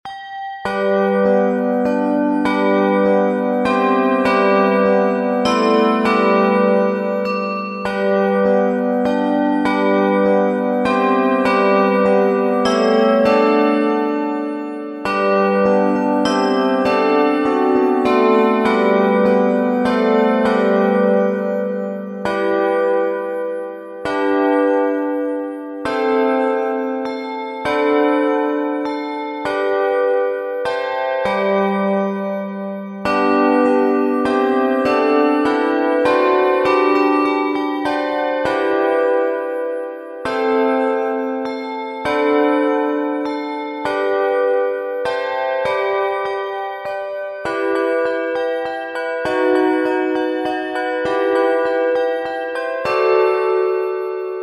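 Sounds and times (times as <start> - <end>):
handbells playing a carol: 0.1 - 54.4.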